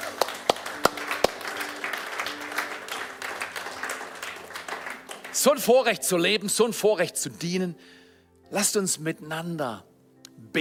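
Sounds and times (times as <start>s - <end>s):
audience applause: 0.0s - 5.6s
speech: 5.4s - 10.6s.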